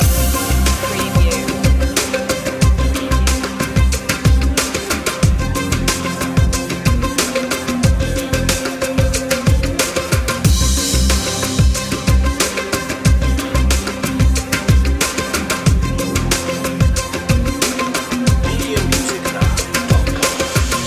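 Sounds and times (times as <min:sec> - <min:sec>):
emotive music loop: 0:00.0 - 0:20.8.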